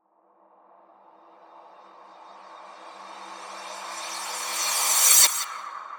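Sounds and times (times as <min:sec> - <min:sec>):
riser sweep: 0:01.9 - 0:05.8.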